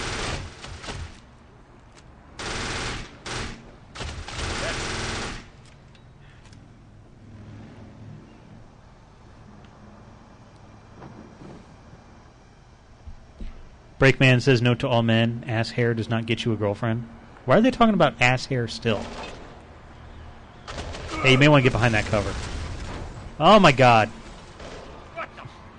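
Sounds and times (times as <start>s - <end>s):
automatic video game gunfire: 0.0s - 1.2s, 2.4s - 5.6s, 20.7s - 25.1s
rumbling video game sounds: 0.0s - 25.7s
speech: 14.0s - 19.3s, 21.2s - 22.5s, 23.4s - 24.2s.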